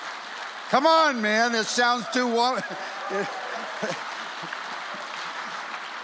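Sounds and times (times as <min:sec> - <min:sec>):
audience applause: 0:00.0 - 0:06.0
speech: 0:00.7 - 0:04.1
laughter: 0:01.0 - 0:06.0
voices calling out: 0:01.4 - 0:04.5.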